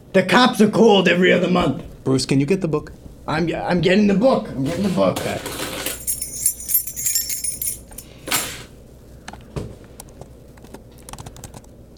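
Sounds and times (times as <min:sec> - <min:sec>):
speech: 0:00.2 - 0:05.6
rustling: 0:05.6 - 0:08.5
wind chimes tinkling: 0:05.8 - 0:08.1.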